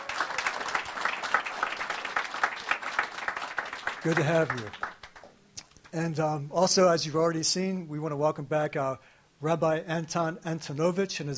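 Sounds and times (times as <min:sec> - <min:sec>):
audience applause welcoming a visiting ministry team: 0:00.0 - 0:05.3
speech: 0:04.0 - 0:04.9, 0:05.9 - 0:11.3.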